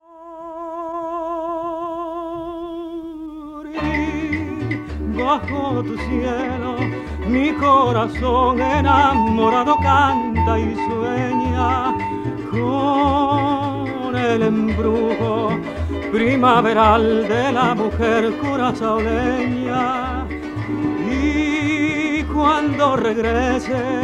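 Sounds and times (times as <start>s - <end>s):
singer: 0.0s - 24.0s
harp: 3.8s - 24.0s.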